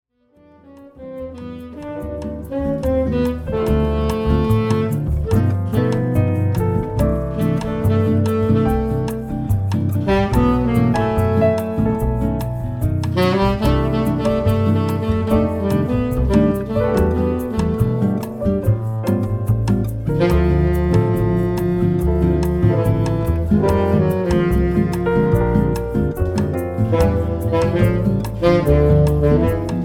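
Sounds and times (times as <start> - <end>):
saxophone meditation music: 0.3 - 29.8.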